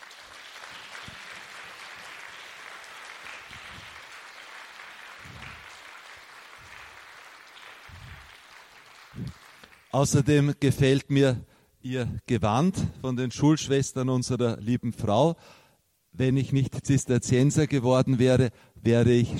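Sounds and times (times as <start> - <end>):
audience applause for the sisters: 0.0 - 9.9
speech: 9.2 - 15.6, 16.2 - 19.3.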